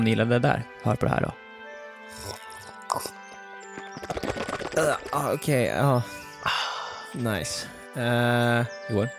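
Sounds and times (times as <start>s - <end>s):
speech: 0.0s - 1.4s, 2.2s - 3.2s, 4.1s - 6.2s, 7.1s - 9.1s
person slurping coffee: 2.1s - 3.2s.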